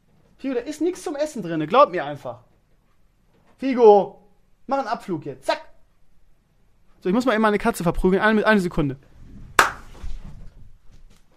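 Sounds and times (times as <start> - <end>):
speech: 0.4 - 2.5, 3.6 - 5.6, 7.0 - 9.1
single hand clap to shoo cats away: 9.6 - 10.0.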